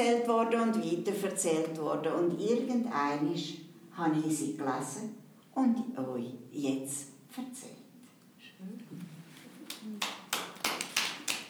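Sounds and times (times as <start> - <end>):
speech: 0.0 - 7.8
elderly audience clapping: 9.6 - 11.4.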